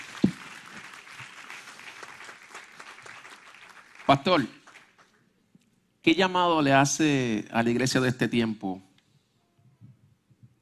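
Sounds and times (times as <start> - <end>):
audience applause: 0.0 - 5.2
sharp loud clap: 0.0 - 5.2
speech: 4.1 - 4.6, 6.0 - 8.9.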